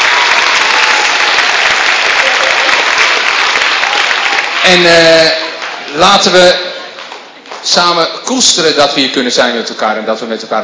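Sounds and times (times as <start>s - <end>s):
audience applause for teachers: 0.0s - 7.6s
speech: 4.7s - 5.4s, 6.0s - 6.6s, 7.6s - 10.6s.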